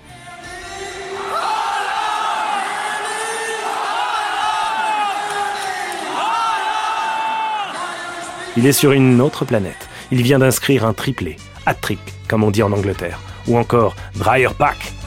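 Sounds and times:
large stadium crowd of football fans cheering: 0:00.1 - 0:10.6
speech: 0:08.6 - 0:15.0.

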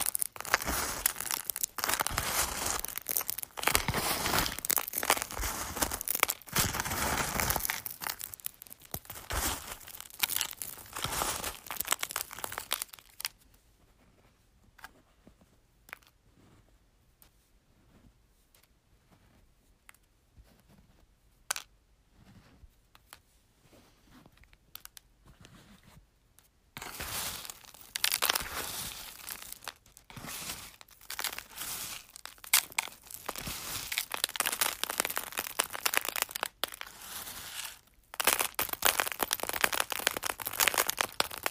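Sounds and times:
eggs crunching: 0:00.0 - 0:13.4, 0:26.8 - 0:41.5.

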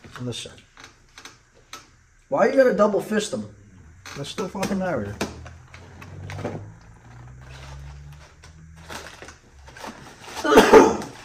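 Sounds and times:
speech: 0:00.2 - 0:00.7, 0:02.3 - 0:03.6, 0:04.2 - 0:05.3, 0:06.4 - 0:06.7
person coughing: 0:10.4 - 0:11.2.

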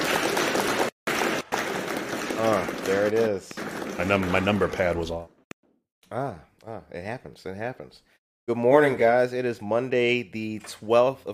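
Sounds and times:
crowd applause: 0:00.0 - 0:05.2
speech: 0:02.4 - 0:05.4, 0:06.1 - 0:11.3.

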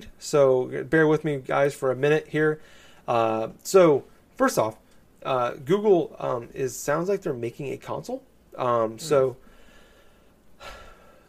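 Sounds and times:
quiet hiss: 0:00.0 - 0:11.2
speech: 0:00.2 - 0:09.4
deep breath: 0:02.6 - 0:03.1, 0:09.4 - 0:11.2.

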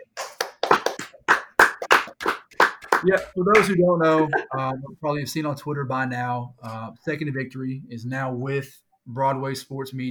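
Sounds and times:
hand clapping: 0:00.0 - 0:04.4
speech: 0:03.0 - 0:10.0.

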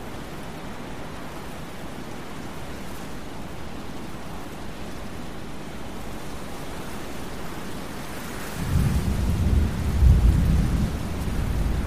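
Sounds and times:
thunderstorm rain: 0:00.0 - 0:11.8
thunder rumbling: 0:08.6 - 0:11.8.

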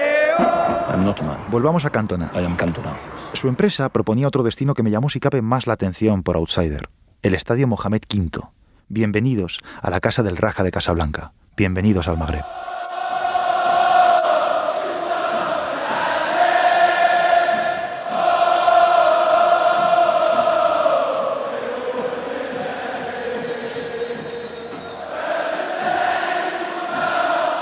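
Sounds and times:
football fans chanting in a stadium: 0:00.0 - 0:01.1, 0:12.2 - 0:27.6
speech: 0:00.4 - 0:12.7.

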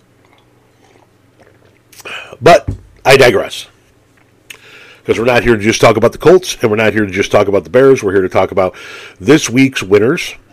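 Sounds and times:
person taking a quick drink: 0:00.0 - 0:02.4
low steady hum: 0:00.0 - 0:10.5
speech: 0:02.4 - 0:03.7, 0:05.0 - 0:10.4.

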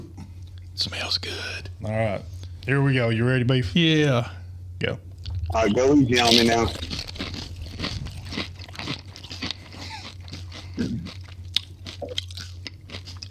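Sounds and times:
speech: 0:00.8 - 0:07.2
crunching and chewing a big scoop of grilled salsa: 0:06.2 - 0:13.2.

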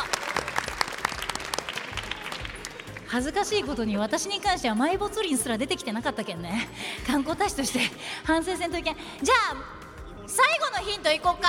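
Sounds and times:
crowd applauding: 0:00.0 - 0:03.8
speech: 0:03.1 - 0:11.4.

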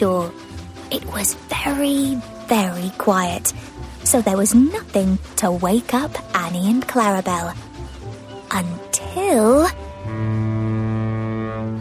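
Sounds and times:
speech: 0:00.0 - 0:07.6, 0:08.5 - 0:09.8
lighthouse foghorn blast: 0:09.8 - 0:11.7.

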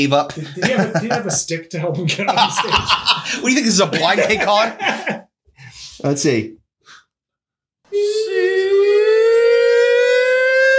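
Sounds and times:
speech: 0:00.0 - 0:05.2, 0:06.0 - 0:06.6
laughter: 0:00.3 - 0:05.3
wailing sound: 0:07.9 - 0:10.7.

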